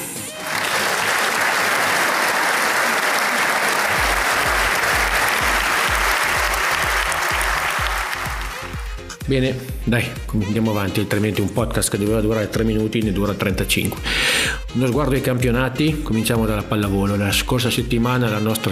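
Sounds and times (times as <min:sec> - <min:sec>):
applause sound effect: 0:00.0 - 0:09.1
speech: 0:09.3 - 0:18.7.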